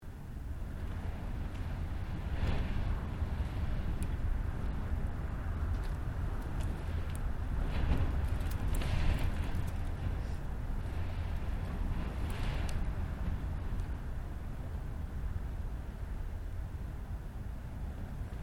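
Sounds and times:
extreme wind: 0.0 - 18.4.

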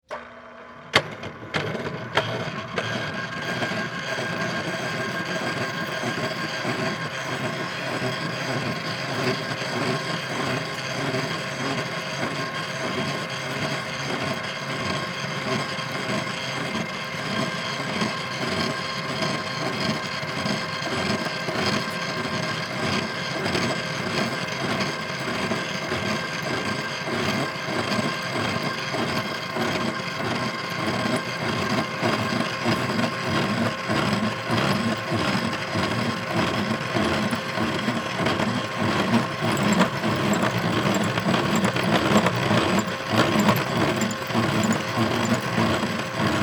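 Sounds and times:
industrial drill press running: 0.0 - 46.4.

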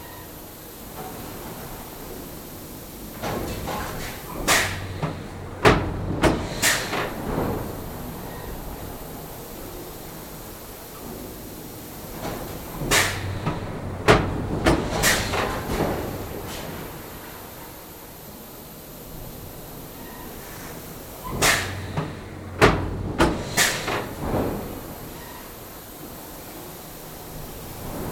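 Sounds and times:
pneumatic hiss: 2.9 - 5.4, 6.2 - 8.9, 9.5 - 18.2, 19.3 - 22.6, 23.2 - 28.1
pneumatic factory press stamping: 3.2 - 8.5, 12.2 - 16.8, 20.4 - 25.5.

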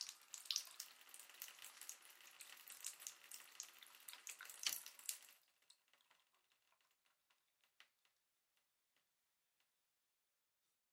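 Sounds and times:
household bathtub filling up with water: 0.0 - 8.2.

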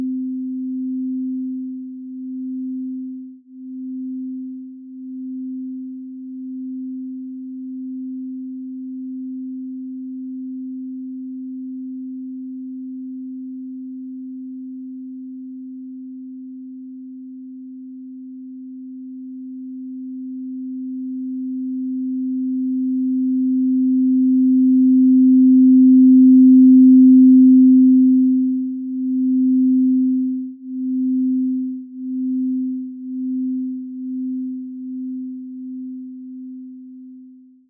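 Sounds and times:
drone bell with pulse feedback swells: 19.9 - 36.9.

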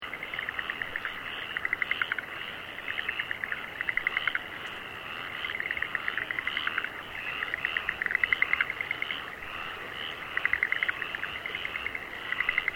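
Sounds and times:
frogs croaking in rice fields in Aomori, Japan: 0.0 - 12.7.

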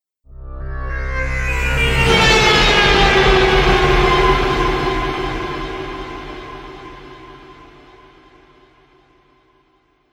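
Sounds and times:
haunted metallic trailer hit impact: 1.2 - 9.1.

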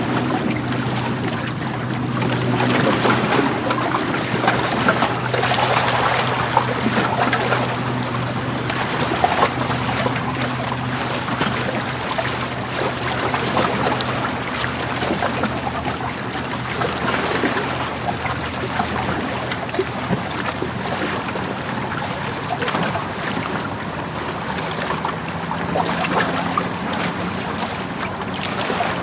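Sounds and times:
waves at a pier dock: 0.0 - 29.0.

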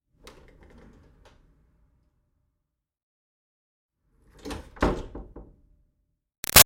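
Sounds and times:
wooden office door pushed open and closed: 4.4 - 5.4.

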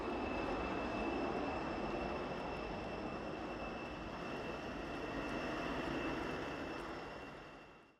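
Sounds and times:
Gloster Meteor F Mk8 fighter jet taxiing: 0.0 - 7.5.

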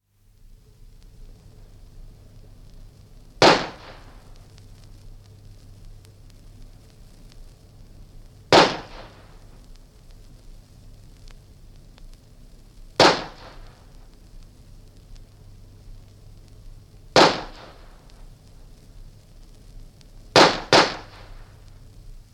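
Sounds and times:
single pistol shot outdoors: 3.4 - 4.2, 8.5 - 9.3, 13.0 - 13.7, 17.2 - 17.9, 20.4 - 21.5.

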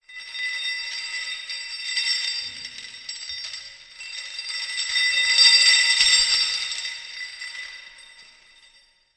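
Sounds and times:
metal chains dragged and sliding on a stone surface with reverb: 0.3 - 8.6.

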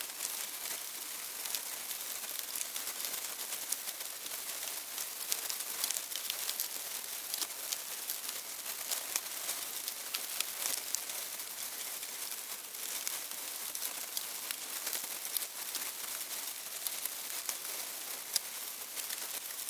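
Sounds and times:
termites moving in a hive: 0.0 - 19.6
termites eating in a hive: 0.2 - 19.6.

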